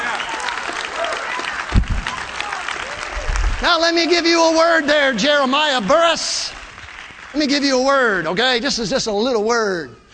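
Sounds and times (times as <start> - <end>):
audience shouting praise: 0.0 - 4.8
audience clapping: 0.0 - 8.7
speech: 3.6 - 6.6, 7.3 - 10.0.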